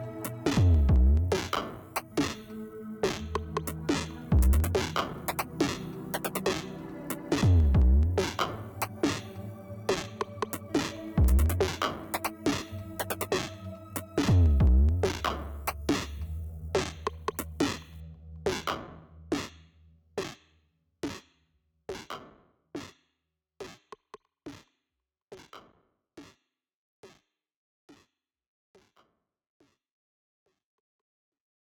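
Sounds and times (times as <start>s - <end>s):
music beat: 0.0s - 19.5s.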